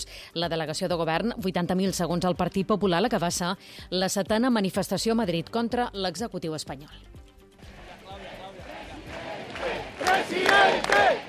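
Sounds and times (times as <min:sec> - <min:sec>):
speech: 0:00.4 - 0:07.2
crowd ovation at a political rally: 0:07.7 - 0:11.2.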